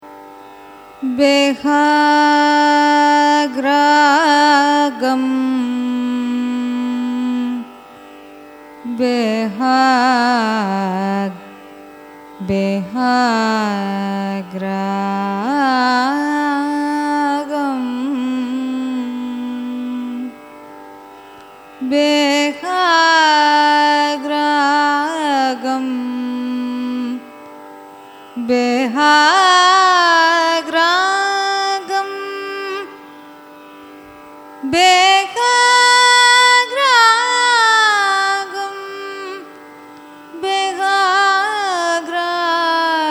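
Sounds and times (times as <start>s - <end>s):
Carnatic raga: 0.0s - 43.0s.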